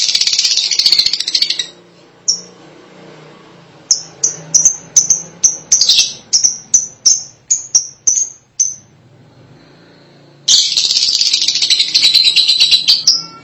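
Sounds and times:
lovebird chirping and squeaking: 0.0s - 2.6s, 3.9s - 9.0s, 10.5s - 13.4s.

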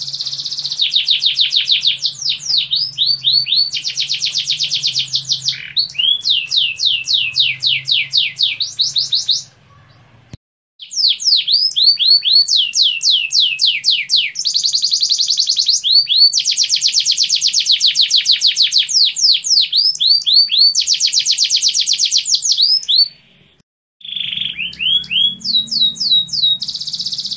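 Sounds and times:
Atlantic canary singing: 0.0s - 27.3s.

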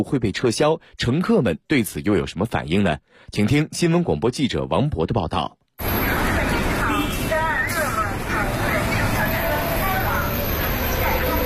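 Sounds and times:
speech: 0.0s - 5.9s
hubbub of voices: 5.8s - 11.4s
route 126 city bus in Beijing pulling into a stop: 5.8s - 11.4s.

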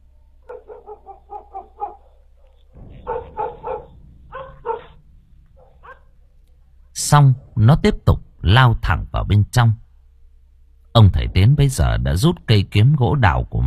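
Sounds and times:
dog barking loudly: 0.5s - 5.0s, 5.6s - 6.1s
speech: 7.1s - 9.8s, 11.0s - 13.6s.

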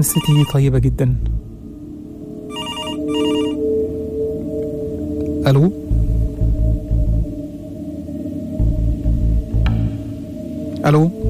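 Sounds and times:
telephone ringing in trilling electronic bursts: 0.0s - 0.6s, 2.5s - 3.6s
speech: 0.0s - 1.5s, 5.5s - 5.9s, 10.8s - 11.2s
steady low hum: 0.0s - 11.2s.

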